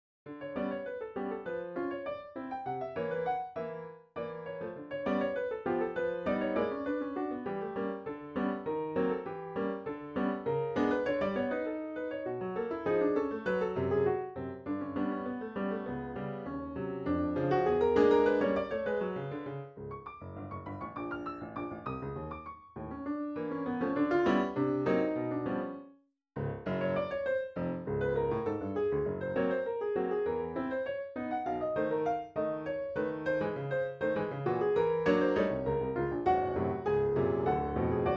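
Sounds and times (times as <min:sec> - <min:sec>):
solo piano mazurka: 0:00.2 - 0:38.1.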